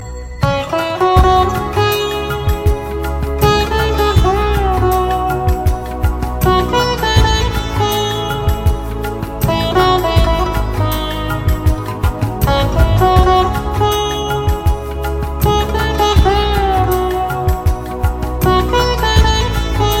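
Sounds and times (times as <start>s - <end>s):
soft tune: 0.0s - 19.9s.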